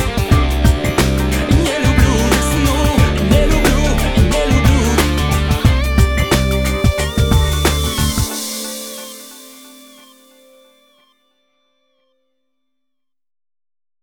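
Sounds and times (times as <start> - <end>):
funky music mix: 0.0 - 10.4.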